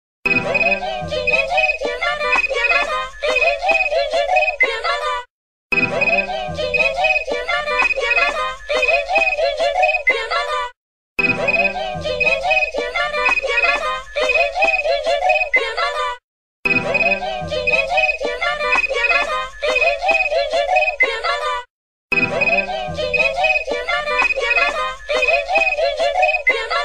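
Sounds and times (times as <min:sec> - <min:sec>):
ringtone: 0:00.3 - 0:04.8, 0:05.7 - 0:10.2, 0:11.2 - 0:15.8, 0:16.7 - 0:21.2, 0:22.1 - 0:26.7.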